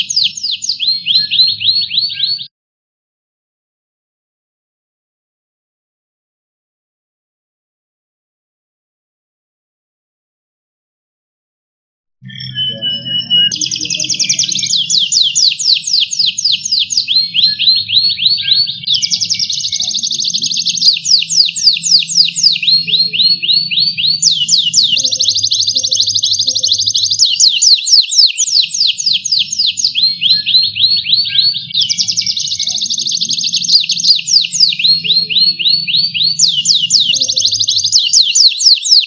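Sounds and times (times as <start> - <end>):
canary singing: 0.0 - 2.5, 12.2 - 39.0.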